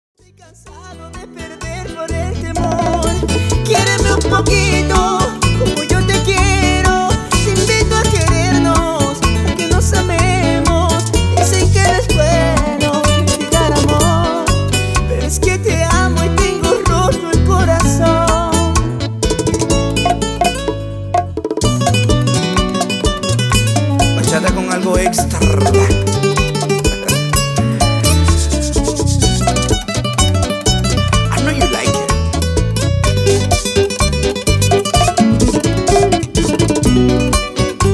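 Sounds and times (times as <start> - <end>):
bachata music: 0.3 - 37.9.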